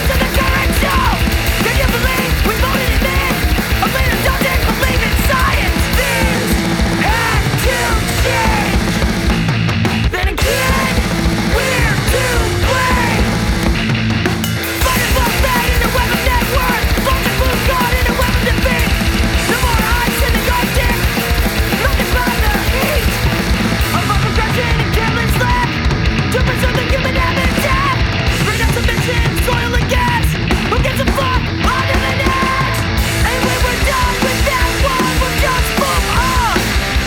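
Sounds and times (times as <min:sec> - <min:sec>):
shouted vocals: 0:00.0 - 0:09.3, 0:10.0 - 0:14.0, 0:14.7 - 0:37.0
distorted guitars: 0:00.0 - 0:37.0
pounding drums: 0:00.0 - 0:37.0
rock song played on air: 0:00.0 - 0:37.0.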